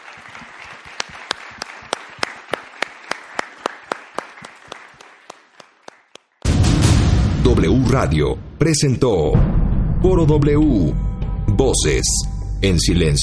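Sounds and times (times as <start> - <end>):
audience applause: 0.0 - 6.5
speech: 7.6 - 13.2.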